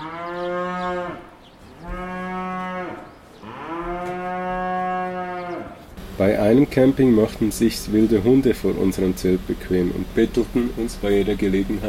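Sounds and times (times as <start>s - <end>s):
cows mooing: 0.0s - 6.1s
speech: 6.2s - 11.8s.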